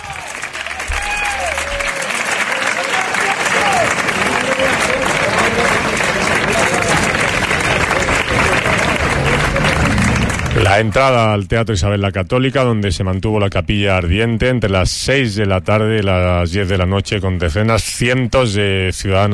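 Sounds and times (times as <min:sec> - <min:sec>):
rhythmic hand clapping as coffin enters: 0:00.0 - 0:11.2
speech: 0:10.7 - 0:19.3.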